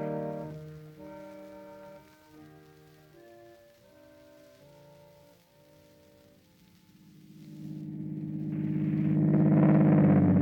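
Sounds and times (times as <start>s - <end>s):
Daimler car driving off: 7.2s - 10.4s.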